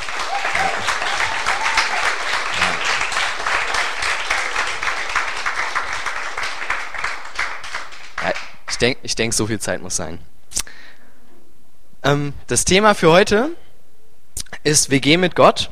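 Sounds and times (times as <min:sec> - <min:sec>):
audience applause for mothers: 0:00.0 - 0:08.8
speech: 0:08.8 - 0:10.4, 0:12.0 - 0:13.6, 0:14.6 - 0:15.7.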